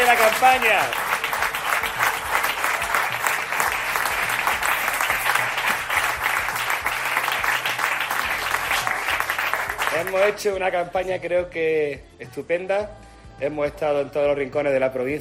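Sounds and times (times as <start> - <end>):
audience applause: 0.0 - 10.4
speech: 0.1 - 1.1, 10.0 - 15.2.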